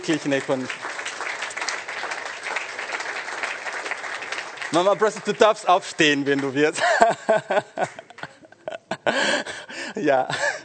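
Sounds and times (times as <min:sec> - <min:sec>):
speech: 0:00.0 - 0:00.9, 0:04.7 - 0:08.1, 0:09.0 - 0:10.5
audience applause: 0:00.0 - 0:06.7
laughter: 0:06.6 - 0:10.6.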